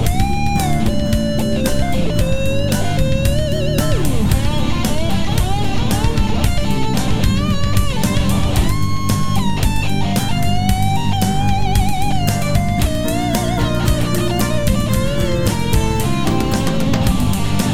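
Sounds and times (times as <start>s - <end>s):
acoustic harmony karaoke music: 0.0s - 17.7s.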